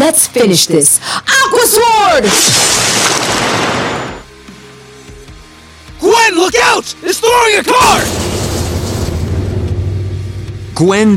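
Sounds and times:
speech: 0:00.1 - 0:03.9, 0:06.4 - 0:08.3, 0:10.8 - 0:11.1
crackling magical mixture explosion: 0:02.2 - 0:04.3, 0:07.8 - 0:10.6.

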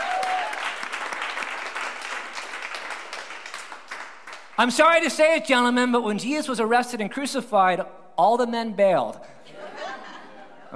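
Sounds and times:
round of applause: 0:00.0 - 0:04.6
speech: 0:04.6 - 0:09.3
laughter: 0:09.4 - 0:10.7.

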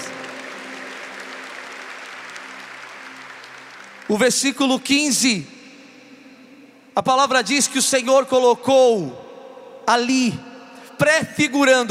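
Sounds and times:
audience applauding: 0:00.0 - 0:05.2
speech: 0:04.1 - 0:05.6, 0:07.0 - 0:09.2, 0:09.9 - 0:11.8.

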